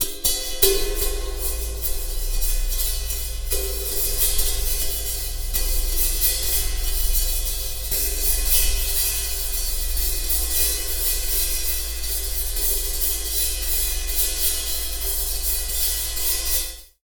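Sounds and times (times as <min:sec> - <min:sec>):
cymbal: 0:00.0 - 0:16.8.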